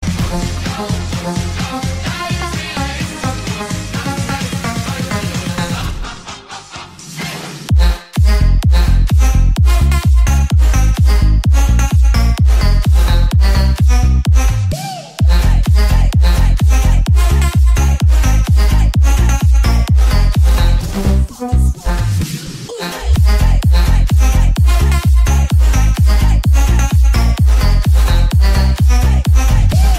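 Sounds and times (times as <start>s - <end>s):
hard bass music: 0.0s - 29.9s.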